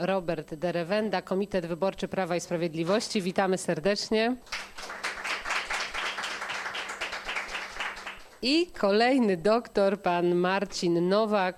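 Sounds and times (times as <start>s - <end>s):
speech: 0.0s - 5.0s, 8.4s - 11.5s
audience applause: 4.5s - 8.4s.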